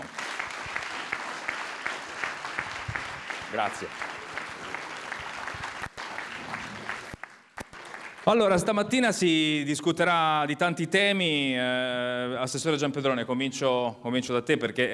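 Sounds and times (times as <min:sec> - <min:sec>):
loud audience applause: 0:00.0 - 0:08.7
speech: 0:03.5 - 0:04.2, 0:08.2 - 0:14.9.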